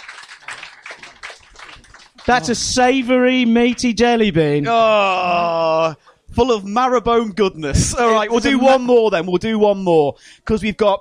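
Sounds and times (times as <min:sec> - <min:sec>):
round of applause, people clapping: 0:00.0 - 0:03.9
speech: 0:02.3 - 0:10.9.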